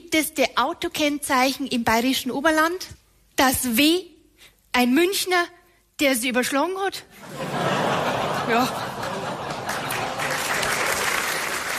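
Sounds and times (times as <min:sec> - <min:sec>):
speech: 0:00.1 - 0:04.1, 0:04.7 - 0:07.7, 0:08.5 - 0:08.9
laughter: 0:07.2 - 0:10.7
audience applause: 0:09.0 - 0:11.7.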